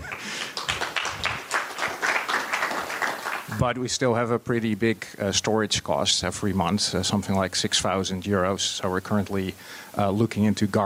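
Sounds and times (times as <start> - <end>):
audience clapping: 0.0 - 3.8
speech: 3.6 - 10.8.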